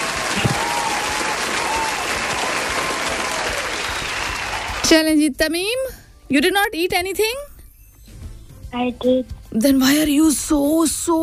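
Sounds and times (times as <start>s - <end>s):
audience clapping during a quiz challenge: 0.0s - 5.0s
speech: 4.9s - 7.5s, 8.7s - 11.2s.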